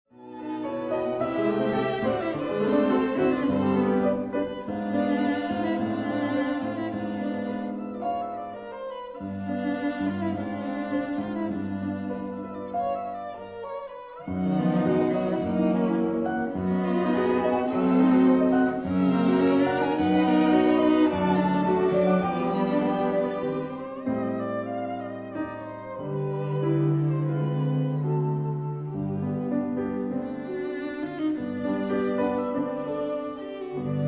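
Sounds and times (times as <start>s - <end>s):
piano quartet: 0.1s - 34.0s.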